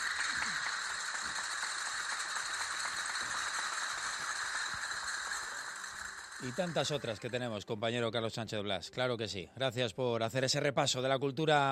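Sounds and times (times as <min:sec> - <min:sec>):
castanet-style applause with rattling clicks: 0:00.0 - 0:07.6
speech: 0:06.4 - 0:11.6.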